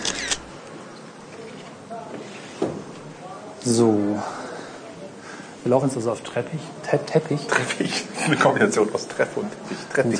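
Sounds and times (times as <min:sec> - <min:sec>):
camera shutter taking a photo indoors: 0:00.0 - 0:00.5
speech: 0:03.7 - 0:04.4, 0:05.6 - 0:10.1.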